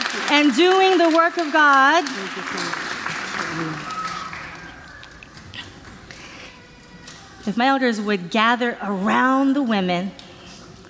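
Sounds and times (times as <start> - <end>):
church audience applause: 0.0 - 6.0
speech: 0.2 - 2.9, 3.5 - 3.9, 7.5 - 10.2.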